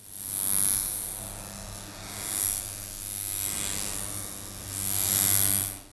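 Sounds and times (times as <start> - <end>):
swarm of multiple small buzzing insects: 0.0 - 5.9.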